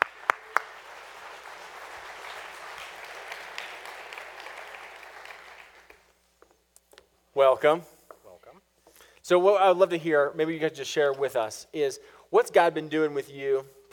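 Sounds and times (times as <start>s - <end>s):
audience applauding to welcome a couple onto the stage: 0.0s - 6.1s
speech: 7.4s - 7.9s, 9.3s - 13.9s.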